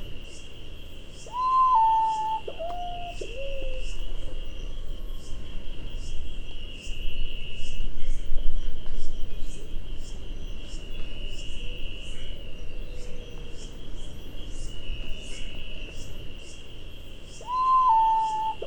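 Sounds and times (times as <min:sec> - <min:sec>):
Nyctibius griseus calling: 0:01.3 - 0:03.9, 0:17.4 - 0:18.6.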